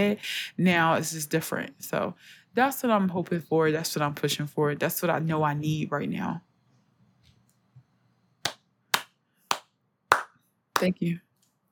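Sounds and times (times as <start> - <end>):
speech: 0.0 - 6.5, 10.8 - 11.2
loud sharp hand claps: 8.4 - 10.9.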